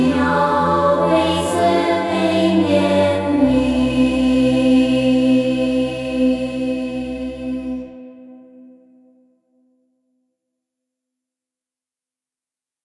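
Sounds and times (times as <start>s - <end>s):
choir singing: 0.0s - 9.0s.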